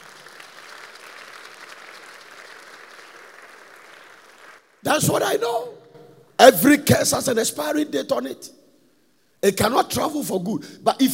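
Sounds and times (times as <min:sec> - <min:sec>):
audience clapping: 0:00.0 - 0:04.8
speech: 0:04.8 - 0:05.8, 0:06.4 - 0:08.6, 0:09.4 - 0:11.1.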